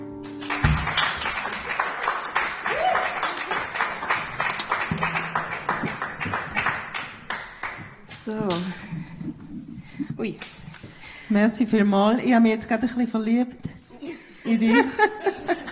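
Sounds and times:
crowd applause: 0.0 - 8.1
speech: 8.3 - 9.0, 10.2 - 10.5, 11.3 - 13.7, 14.5 - 15.4
laughter: 14.0 - 15.7.

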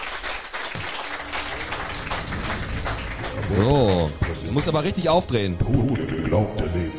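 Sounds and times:
applause: 0.0 - 5.1
speech: 3.5 - 6.8.

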